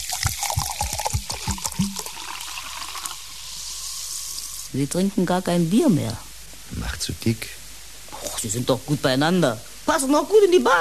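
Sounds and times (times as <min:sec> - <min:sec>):
water pouring into a glass: 0:00.0 - 0:04.7
speech: 0:04.8 - 0:07.6, 0:08.4 - 0:10.8.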